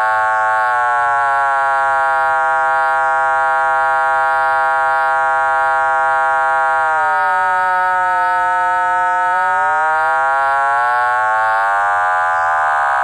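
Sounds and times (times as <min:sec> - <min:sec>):
synthesizer triangle wave modulated by fast sine wave: 0:00.0 - 0:13.0.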